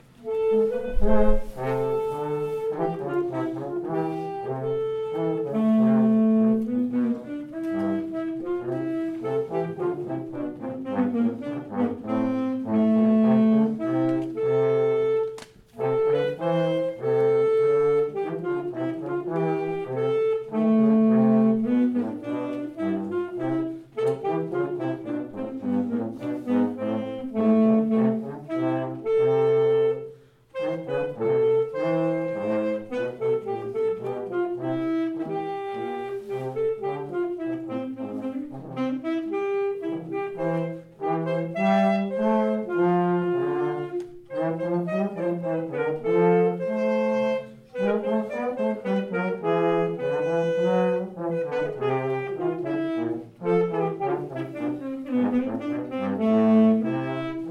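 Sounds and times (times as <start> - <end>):
hornpipe tune: 0.0 - 57.5.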